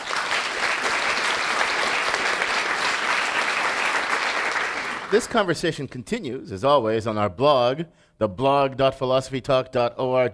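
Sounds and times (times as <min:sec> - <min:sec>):
live audience applause: 0:00.0 - 0:05.5
speech: 0:05.1 - 0:10.3.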